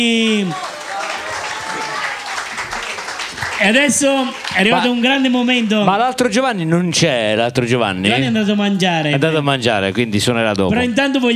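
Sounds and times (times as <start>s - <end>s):
speech: 0.0s - 0.7s, 3.6s - 11.3s
crowd applauding: 0.0s - 6.3s.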